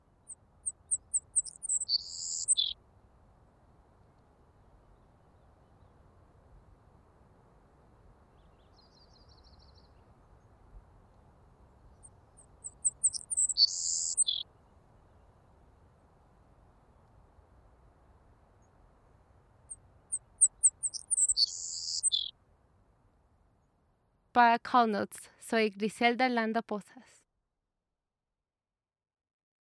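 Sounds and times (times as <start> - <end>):
saltmarsh sparrow singing: 0.1 - 6.8, 8.1 - 15.8, 19.7 - 22.3
speech: 24.4 - 27.1.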